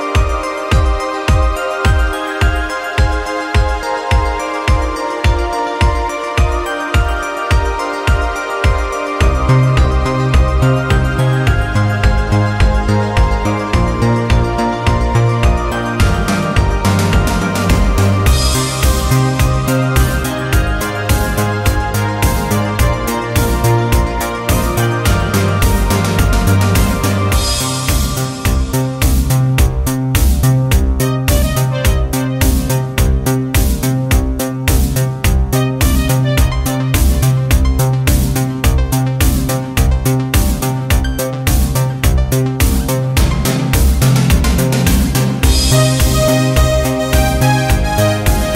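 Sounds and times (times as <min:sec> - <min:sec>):
1980s italo disco music: 0:00.1 - 0:48.5.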